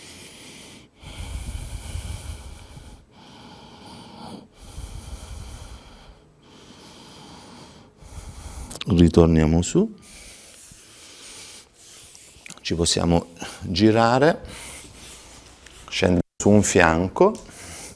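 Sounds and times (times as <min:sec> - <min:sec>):
slow deep breathing during relaxation exercise: 0:00.0 - 0:08.9, 0:10.0 - 0:12.4, 0:14.4 - 0:15.8
speech: 0:08.9 - 0:10.2, 0:12.7 - 0:14.7, 0:16.0 - 0:17.5.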